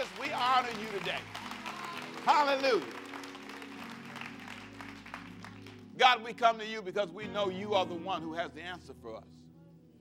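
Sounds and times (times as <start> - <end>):
audience clapping hands: 0.0 - 5.9
speech: 0.6 - 1.5, 2.2 - 3.0, 6.0 - 9.4.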